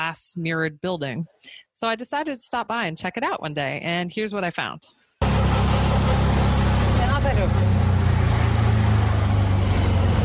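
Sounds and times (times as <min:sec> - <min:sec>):
speech: 0:00.0 - 0:05.6, 0:07.2 - 0:07.7
car engine humming while driving: 0:05.2 - 0:10.2
road noise: 0:05.2 - 0:10.2.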